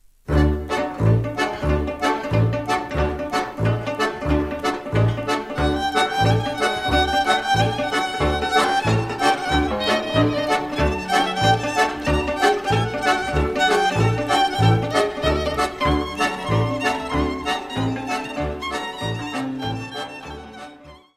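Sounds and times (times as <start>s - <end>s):
medley of Muntenian folk melodies from Romania: 0.3s - 21.1s.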